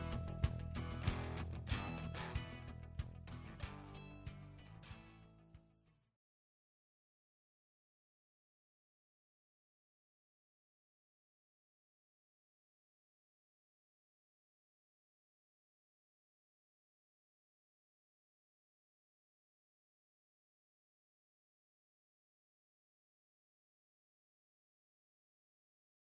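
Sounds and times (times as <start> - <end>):
background music: 0.0 - 6.0.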